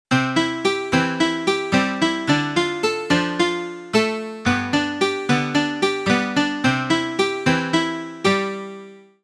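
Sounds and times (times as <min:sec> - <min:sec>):
Casio SA 80 electronic keyboard: 0:00.1 - 0:09.2.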